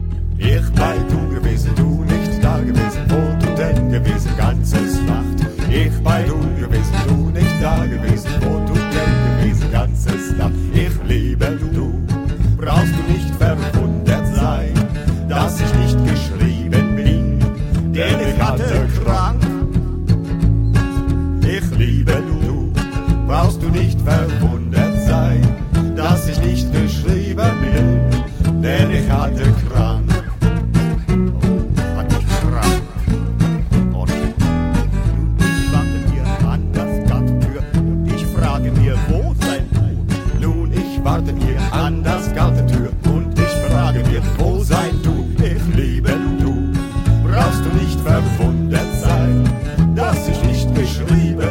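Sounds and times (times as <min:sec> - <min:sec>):
karaoke backing track: 0:00.1 - 0:51.4.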